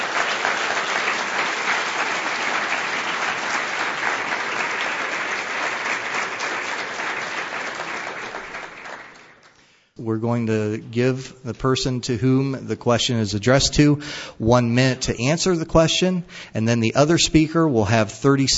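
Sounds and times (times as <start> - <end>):
audience applauding: 0.0 - 9.6
speech: 10.1 - 18.5.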